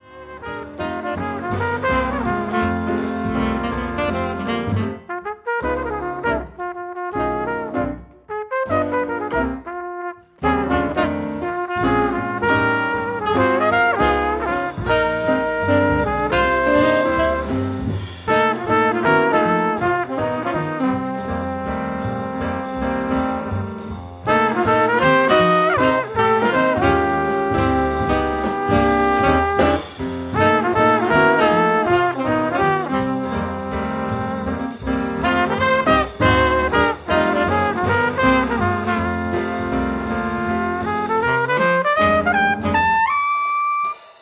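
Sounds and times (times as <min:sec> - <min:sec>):
quintet playing: 0:00.0 - 0:44.0.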